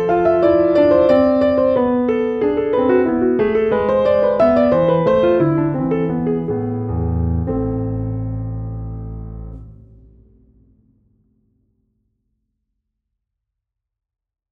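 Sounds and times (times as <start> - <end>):
neo-baroque music: 0.0 - 9.8.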